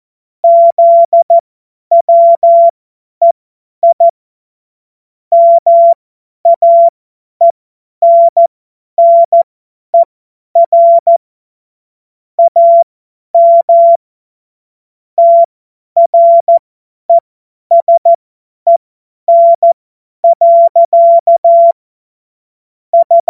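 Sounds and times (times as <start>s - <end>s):
Morse code course tones: 0.4s - 2.7s, 5.3s - 6.9s, 8.0s - 9.4s, 10.0s - 11.2s, 12.4s - 12.8s, 13.4s - 14.0s, 15.2s - 18.1s, 18.7s - 21.8s, 23.0s - 23.2s.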